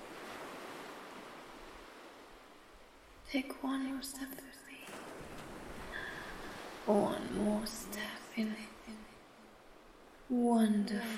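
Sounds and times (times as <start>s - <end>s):
water waves washing: 0.0s - 3.2s, 4.8s - 10.4s
speech: 3.3s - 5.2s, 6.9s - 9.0s, 10.3s - 11.1s.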